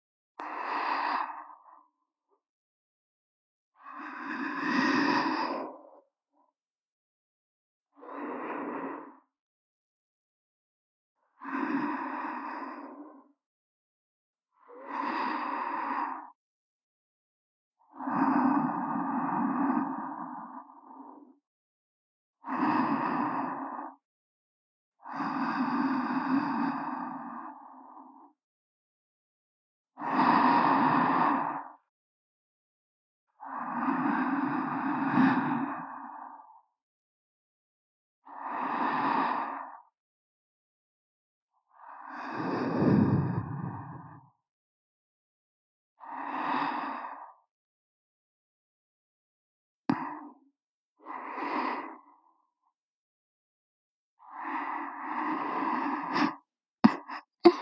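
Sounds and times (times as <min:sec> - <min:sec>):
person breathing in sleep, right channel: 0:00.4 - 0:01.9, 0:03.8 - 0:06.1, 0:08.0 - 0:09.3, 0:11.4 - 0:13.3, 0:14.7 - 0:16.4, 0:18.0 - 0:21.3, 0:22.4 - 0:24.0, 0:25.0 - 0:28.4, 0:30.0 - 0:31.8, 0:33.4 - 0:36.7, 0:38.3 - 0:39.9, 0:41.7 - 0:44.3, 0:46.0 - 0:47.5, 0:49.9 - 0:50.4, 0:51.0 - 0:52.4, 0:54.2 - 0:57.6.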